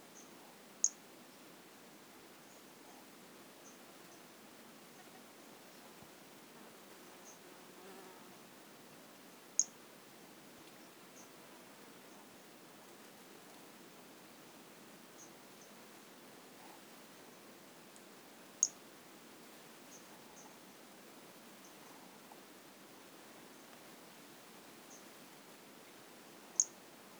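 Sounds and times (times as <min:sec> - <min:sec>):
soft hiss: 0:00.0 - 0:27.1
white-lined pumpkin toadlet chirping: 0:26.6 - 0:26.8.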